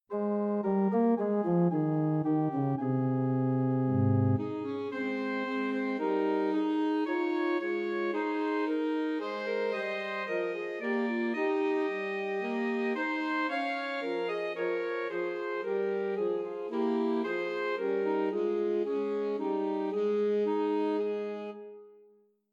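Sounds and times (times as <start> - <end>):
three alto saxophones playing Christmas trios: 0.2 - 21.8.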